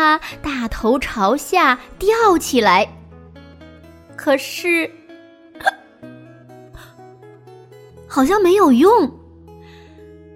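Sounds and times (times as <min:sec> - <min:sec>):
speech: 0:00.1 - 0:03.0, 0:04.2 - 0:05.0, 0:05.6 - 0:05.8, 0:08.2 - 0:09.2
hiccup: 0:05.6 - 0:06.0.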